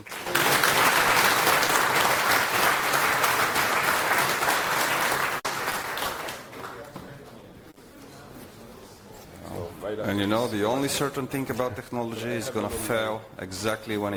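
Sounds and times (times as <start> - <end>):
audience applause: 0.0 - 6.9
speech: 10.2 - 14.1.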